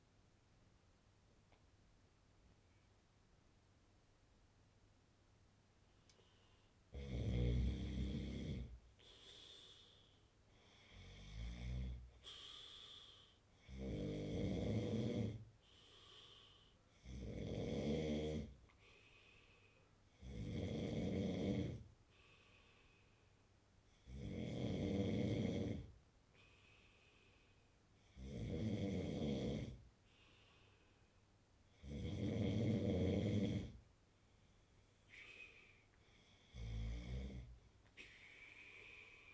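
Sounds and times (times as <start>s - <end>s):
man snoring: 6.9s - 8.8s, 10.9s - 12.1s, 13.6s - 15.4s, 17.0s - 18.6s, 20.2s - 21.8s, 24.0s - 25.9s, 28.1s - 29.8s, 31.8s - 33.8s, 36.5s - 37.5s.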